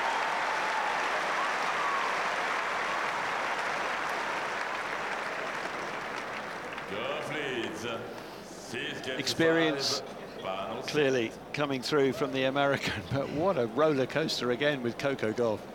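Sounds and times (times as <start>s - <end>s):
tennis crowd clapping and cheering after a winning shot: 0.0s - 8.2s
speech: 6.9s - 15.7s.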